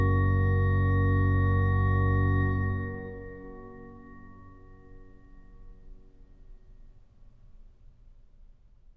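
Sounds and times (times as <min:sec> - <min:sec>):
organ playing chorale preludes: 0:00.0 - 0:05.2.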